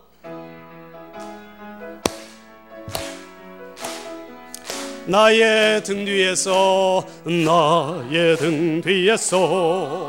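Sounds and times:
audience clapping in rhythm: 0:02.0 - 0:10.0
speech: 0:05.1 - 0:10.0.

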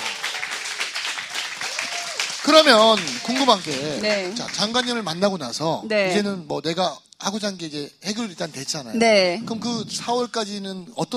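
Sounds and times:
audience applause: 0:00.0 - 0:05.1
speech: 0:02.4 - 0:11.1.

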